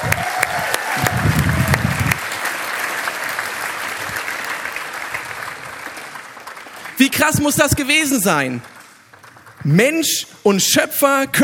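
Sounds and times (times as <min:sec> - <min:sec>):
audience applause: 0:00.0 - 0:09.6
speech: 0:07.1 - 0:08.8, 0:09.6 - 0:11.4.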